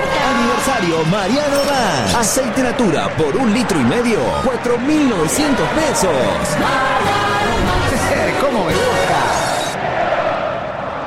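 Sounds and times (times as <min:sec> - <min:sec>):
football crowd singing at Estadio Kempes in Córdoba during an Instituto match: 0:00.0 - 0:11.0
speech: 0:00.8 - 0:07.8.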